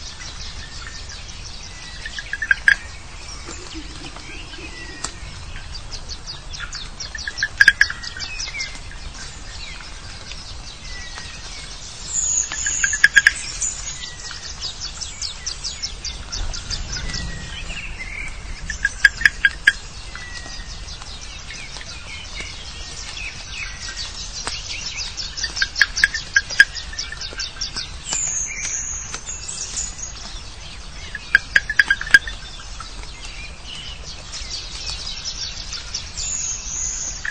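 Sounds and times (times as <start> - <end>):
wood frogs: 2.0 - 8.8, 12.4 - 14.5, 16.2 - 20.7, 24.8 - 29.3, 30.2 - 33.1.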